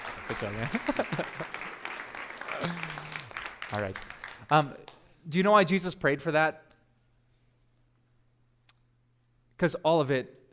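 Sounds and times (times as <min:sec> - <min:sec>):
audience applause: 0:00.0 - 0:05.0
speech: 0:00.3 - 0:01.7, 0:02.6 - 0:03.0, 0:03.7 - 0:06.6, 0:09.6 - 0:10.4
laughter: 0:00.3 - 0:03.3.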